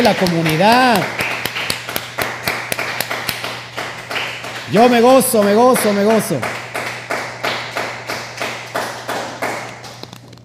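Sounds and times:
speech: 0.0s - 1.2s, 4.7s - 6.6s
applause: 0.0s - 10.2s.

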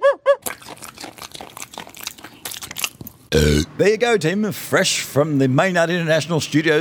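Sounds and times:
cartoon dog Fred Bassett sloppily eating a giant waffle: 0.4s - 3.7s
speech: 3.3s - 6.7s.

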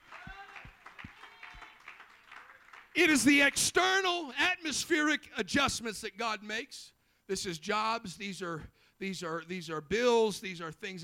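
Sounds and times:
audience hand clapping: 0.0s - 3.4s
speech: 3.0s - 11.0s.

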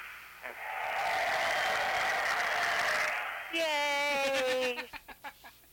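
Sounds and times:
canned applause played from a button: 0.5s - 3.5s
laughter: 4.1s - 5.6s.

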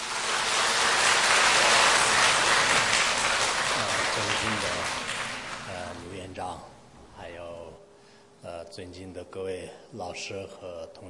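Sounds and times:
audience applause: 0.0s - 6.1s
speech: 8.8s - 11.0s.

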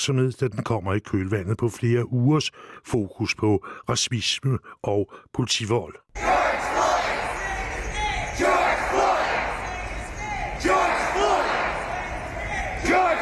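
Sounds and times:
speech: 0.0s - 6.4s
constant murmur of crowd noise: 6.2s - 13.1s
large crowd of protesters chanting in unison in the street: 6.2s - 13.1s.

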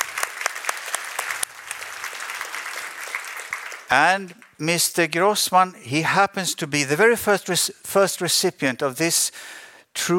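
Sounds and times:
audience applause: 0.0s - 4.6s
speech: 3.9s - 10.1s.

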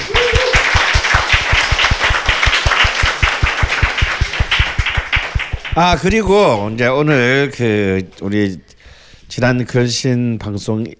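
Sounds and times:
applause: 0.0s - 6.5s
speech: 5.8s - 8.7s, 9.3s - 10.9s.

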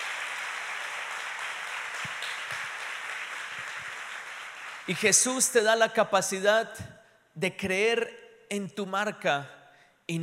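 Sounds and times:
crowd applauding: 0.0s - 5.2s
speech: 4.9s - 10.2s.

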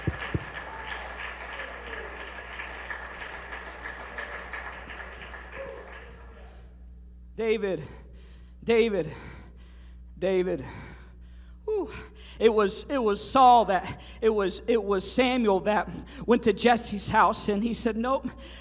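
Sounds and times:
audience clapping hands: 0.0s - 6.7s
speech: 7.4s - 8.0s, 8.7s - 9.3s, 10.2s - 10.8s, 11.9s - 18.5s.

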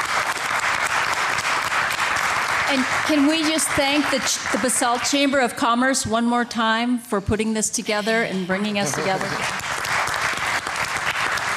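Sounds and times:
audience applause: 0.0s - 5.4s, 8.8s - 11.5s
speech: 2.7s - 9.6s.

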